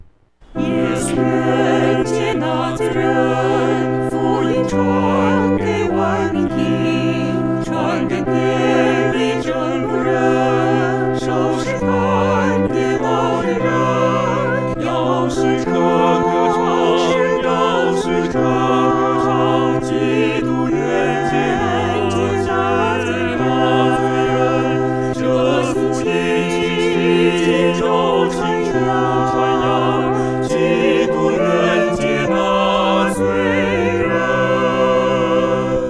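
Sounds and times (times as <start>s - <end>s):
four-part choir singing: 0.5s - 35.8s.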